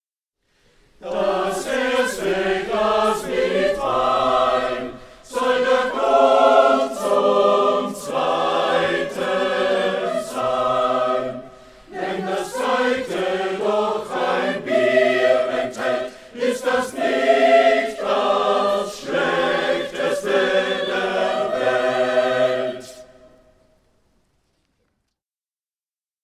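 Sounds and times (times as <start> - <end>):
choir singing a toast: 1.0 - 23.6.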